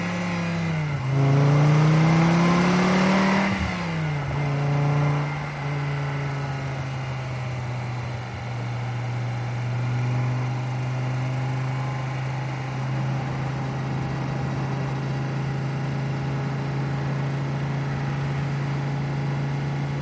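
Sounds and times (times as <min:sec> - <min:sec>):
sports car driving over 100 mph: 0:00.0 - 0:20.0.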